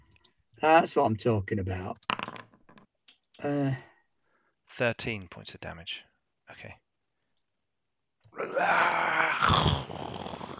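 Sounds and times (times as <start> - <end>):
speech: 0.6 - 2.1, 3.4 - 3.9, 4.8 - 6.8, 8.3 - 10.0
person voicing a monster's growl: 8.4 - 10.5.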